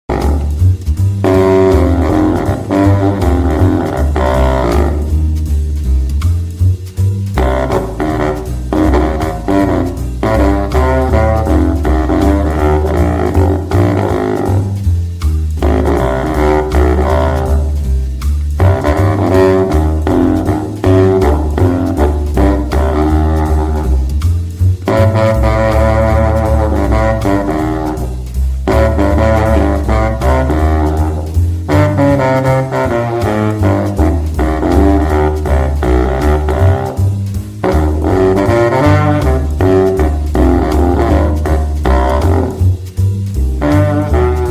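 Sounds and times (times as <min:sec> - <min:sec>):
J. Elle Stainer contrabass saxophone: 0:00.0 - 0:44.4.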